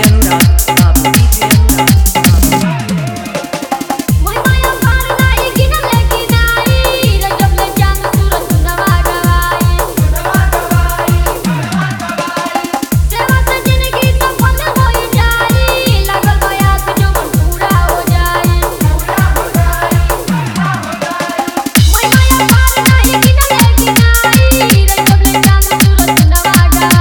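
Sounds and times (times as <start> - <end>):
dholak dance mix with bass: 0.0 - 26.9.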